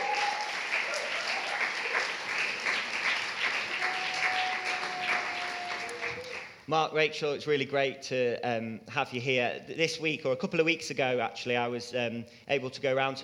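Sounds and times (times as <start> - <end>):
crowd clapping: 0.0 - 6.7
speech: 6.7 - 13.2.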